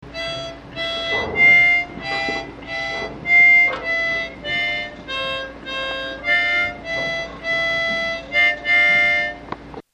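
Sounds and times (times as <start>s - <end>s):
harmonica: 0.0s - 9.8s.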